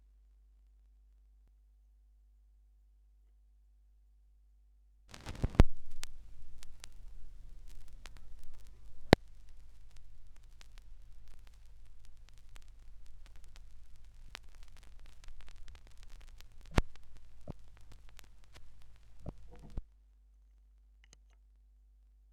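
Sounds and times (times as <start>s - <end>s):
vinyl record noise: 5.1s - 19.9s.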